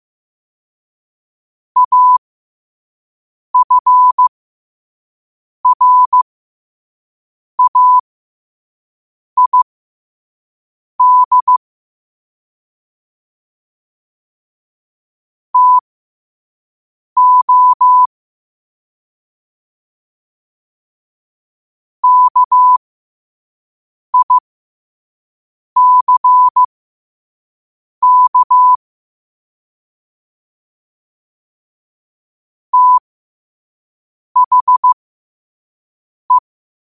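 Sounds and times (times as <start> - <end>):
morse code at 5 wpm: 1.8 - 2.2, 3.6 - 4.3, 5.7 - 6.2, 7.6 - 8.0, 9.4 - 9.7, 11.0 - 11.6, 15.6 - 15.8, 17.2 - 18.1, 22.0 - 22.8, 24.2 - 24.4, 25.8 - 26.7, 28.0 - 28.8, 32.7 - 33.0, 34.4 - 35.0.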